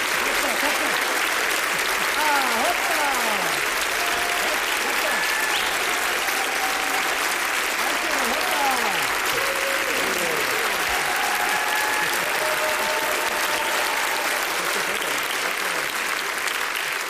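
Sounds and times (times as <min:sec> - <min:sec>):
laughter: 0:00.0 - 0:07.1, 0:07.8 - 0:16.5
concert audience applause: 0:00.0 - 0:17.0
cheers and whistles: 0:02.2 - 0:15.0.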